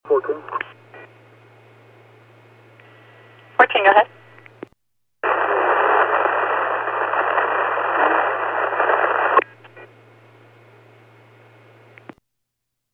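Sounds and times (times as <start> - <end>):
radio static hiss on a dispatch channel: 0.1 - 0.9, 2.8 - 4.4, 5.2 - 11.0
faint crackling hum: 0.1 - 12.2
speech: 3.6 - 4.2
clicks: 11.9 - 12.2.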